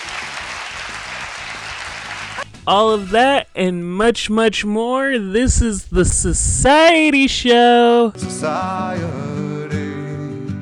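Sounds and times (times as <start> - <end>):
clapping: 0.0 - 2.5
speech: 2.6 - 9.3.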